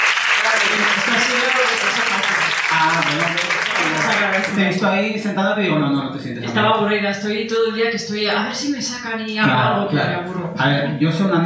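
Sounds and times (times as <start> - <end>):
audience applause: 0.0 - 4.8
speech: 4.2 - 11.4.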